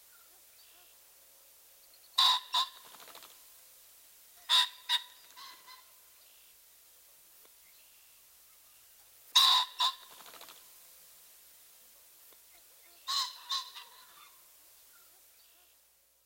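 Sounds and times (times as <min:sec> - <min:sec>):
ring-necked pheasant squawking: 0:02.2 - 0:03.3, 0:04.4 - 0:06.5, 0:09.3 - 0:10.7, 0:12.5 - 0:15.8.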